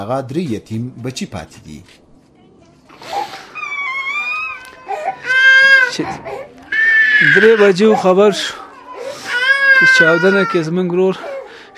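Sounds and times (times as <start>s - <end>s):
speech: 0.0s - 2.0s, 6.0s - 6.5s, 7.2s - 8.6s, 9.8s - 11.3s
people wailing and crying in mourning for a family member killed in an attack: 3.2s - 11.7s.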